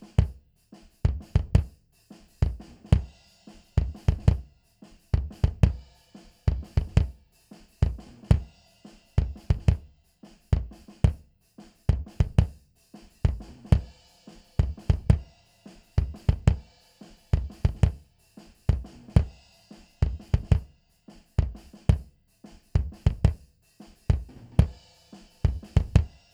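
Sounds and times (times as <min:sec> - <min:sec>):
bass drum: 0:00.0 - 0:00.4, 0:01.0 - 0:01.8, 0:02.4 - 0:03.1, 0:03.8 - 0:04.5, 0:05.1 - 0:05.8, 0:06.5 - 0:07.2, 0:07.8 - 0:08.5, 0:09.2 - 0:11.3, 0:11.9 - 0:12.6, 0:13.2 - 0:14.0, 0:14.6 - 0:15.3, 0:16.0 - 0:16.7, 0:17.3 - 0:18.1, 0:18.7 - 0:19.4, 0:20.0 - 0:20.7, 0:21.4 - 0:22.1, 0:22.7 - 0:23.5, 0:24.1 - 0:24.8, 0:25.4 - 0:26.2.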